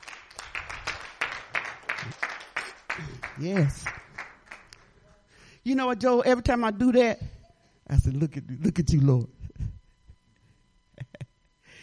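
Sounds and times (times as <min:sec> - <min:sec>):
group clapping in a steady rhythm: 0:00.0 - 0:05.0
speech: 0:03.0 - 0:04.0, 0:05.6 - 0:07.3, 0:07.9 - 0:09.4.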